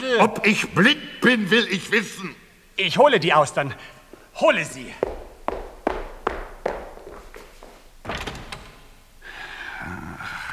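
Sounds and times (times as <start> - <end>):
speech: 0.0 - 5.2
footsteps: 4.1 - 8.7
door slamming: 7.9 - 9.1.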